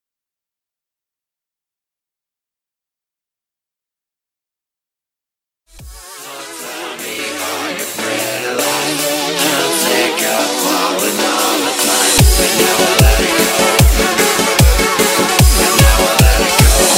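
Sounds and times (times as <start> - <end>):
music buildup: 5.8 - 16.9.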